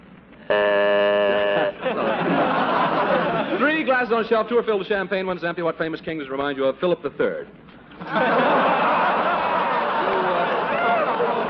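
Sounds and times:
game show buzzer: 0.5 - 1.8
laughter: 1.3 - 3.9, 7.9 - 11.4
speech: 3.9 - 8.6.

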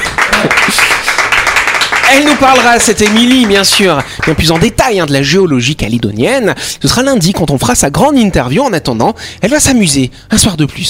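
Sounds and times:
applause for a guest: 0.0 - 5.1
speech: 2.1 - 10.8.

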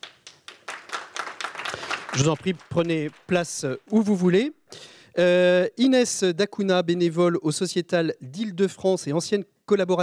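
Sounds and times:
audience applauding: 0.0 - 4.3
speech: 2.2 - 10.0.

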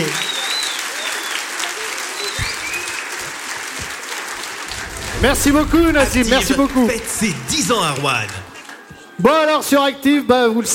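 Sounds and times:
concert audience applause at a radio station's tenth-anniversary show in Roanne: 0.0 - 4.7
speech: 5.2 - 8.4, 9.2 - 10.7.

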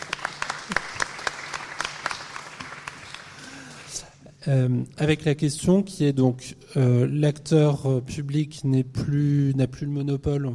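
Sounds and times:
audience applause: 0.0 - 4.0
speech: 4.4 - 10.5.

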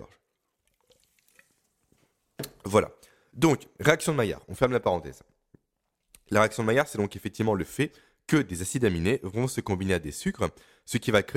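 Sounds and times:
speech: 0.0 - 0.2, 2.6 - 5.4, 6.3 - 11.3
person taking a small sip of a drink: 0.1 - 2.1.

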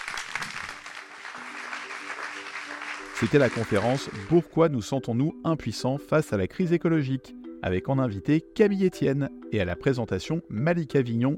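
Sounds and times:
audience applause: 0.0 - 4.4
speech: 3.2 - 11.3.

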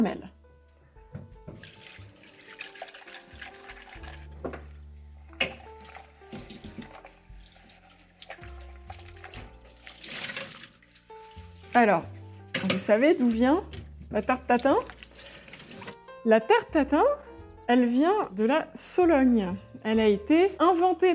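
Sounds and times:
speech: 0.0 - 0.3, 11.8 - 15.0, 16.2 - 21.1
water running while washing saucepan: 1.4 - 16.1.

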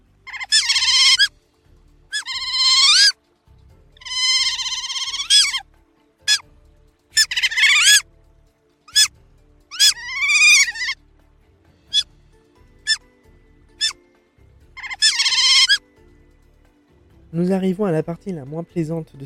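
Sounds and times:
Eurasian otter squealing and chirping: 0.2 - 1.3, 2.1 - 3.2, 4.0 - 5.6, 6.2 - 6.4, 7.1 - 8.0, 8.9 - 9.1, 9.7 - 11.0, 11.9 - 12.1, 12.8 - 13.1, 13.8 - 14.0, 14.8 - 15.8
speech: 17.4 - 19.2.

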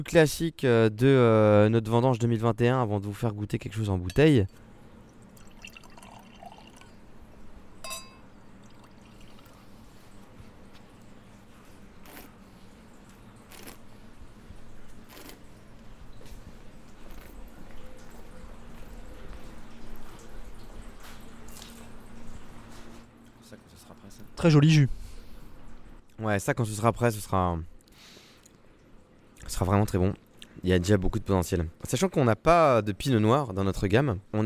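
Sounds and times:
speech: 0.0 - 4.6, 24.4 - 25.0, 26.2 - 27.7, 29.5 - 34.4
wine drawn from an oak barrel for tasting, dripping and trickling: 4.0 - 12.0, 12.6 - 23.0.

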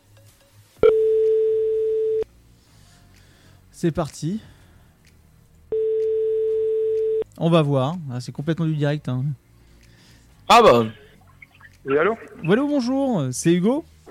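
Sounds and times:
telephone ringing tone: 0.8 - 2.2, 5.7 - 7.2
speech: 3.8 - 4.6, 7.4 - 9.4, 10.5 - 11.0, 11.8 - 13.9.

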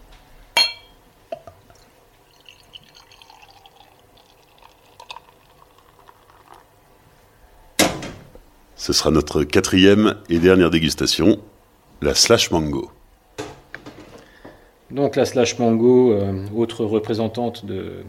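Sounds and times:
small clinks of beer tasting glass: 0.6 - 1.5
beer tasting glass being rinsed at a brewery: 1.4 - 6.8
speech: 8.8 - 13.0, 14.9 - 18.0.

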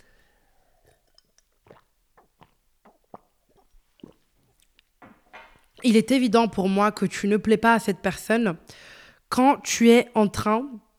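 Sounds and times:
person sipping and swallowing a little water: 0.0 - 5.9
speech: 5.8 - 10.8.

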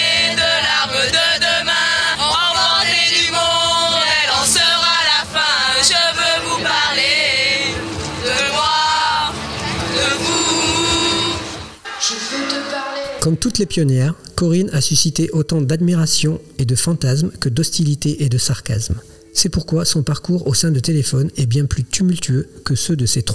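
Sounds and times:
group of young girls singing before a concert: 0.0 - 13.3
speech: 13.3 - 23.3.

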